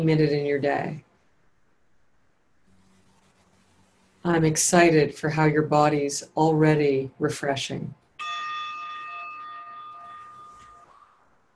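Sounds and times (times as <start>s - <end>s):
speech: 0.0s - 1.1s, 4.2s - 8.4s
meditation timer bell: 8.2s - 11.0s.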